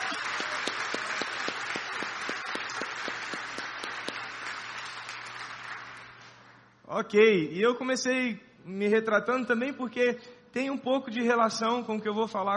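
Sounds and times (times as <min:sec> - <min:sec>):
rhythmic sharp clap: 0:00.0 - 0:06.6
round of applause from many hands: 0:00.0 - 0:06.7
speech: 0:06.9 - 0:12.5.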